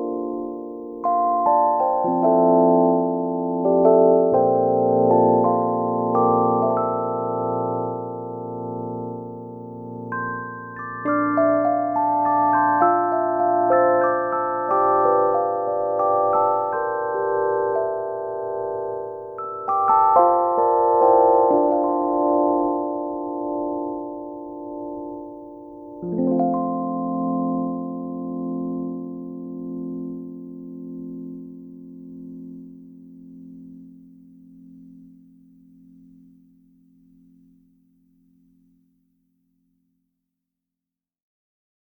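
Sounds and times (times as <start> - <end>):
Rhodes electric piano with delta tremolo: 0.0 - 34.0.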